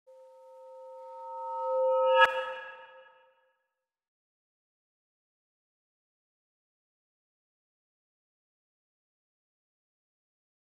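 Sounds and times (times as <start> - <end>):
ambient music: 0.1 - 3.4.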